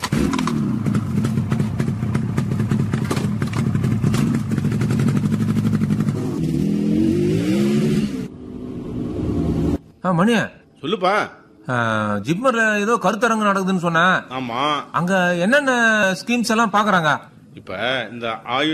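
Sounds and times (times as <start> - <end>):
motorcycle starting, revving and driving off: 0.0 - 9.8
speech: 10.0 - 18.7.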